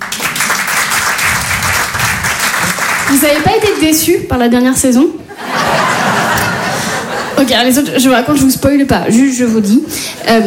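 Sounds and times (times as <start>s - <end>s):
audience applause: 0.0s - 3.8s
speech: 3.1s - 5.2s, 7.4s - 10.4s
laughter: 5.3s - 7.5s.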